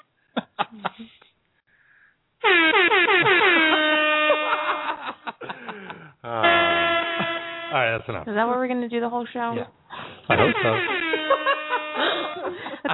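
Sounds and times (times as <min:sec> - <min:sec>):
laughter: 0:00.4 - 0:01.2, 0:03.2 - 0:07.5, 0:10.3 - 0:12.9
air horn blaring: 0:02.4 - 0:05.1, 0:06.4 - 0:08.0, 0:10.3 - 0:12.5
speech: 0:08.0 - 0:11.4.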